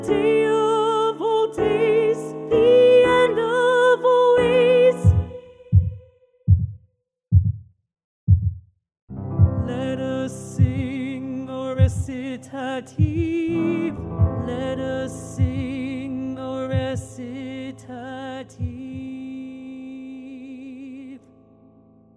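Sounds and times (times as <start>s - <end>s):
person singing recitative: 0.0s - 6.0s, 9.6s - 21.2s.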